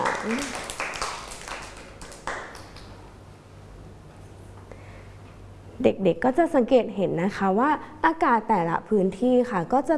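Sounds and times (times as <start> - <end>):
children clapping: 0.0 - 3.0
speech: 0.2 - 0.7, 5.8 - 9.9.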